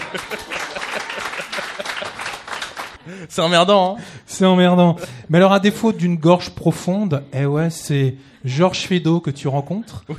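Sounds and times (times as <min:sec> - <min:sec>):
audience applause: 0:00.0 - 0:03.2
laughter: 0:00.0 - 0:03.4, 0:09.9 - 0:10.1
speech: 0:00.1 - 0:00.6, 0:03.1 - 0:10.1.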